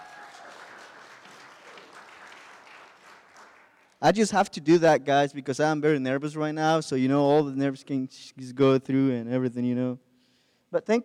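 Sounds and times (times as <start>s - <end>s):
audience clapping and cheering: 0.0s - 4.2s
speech: 4.0s - 10.0s, 10.7s - 11.0s.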